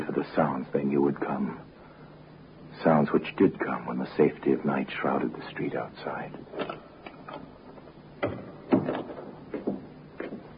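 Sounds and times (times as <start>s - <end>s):
speech: 0.3s - 1.7s, 2.8s - 6.8s
door opening in a dark building: 8.2s - 9.8s.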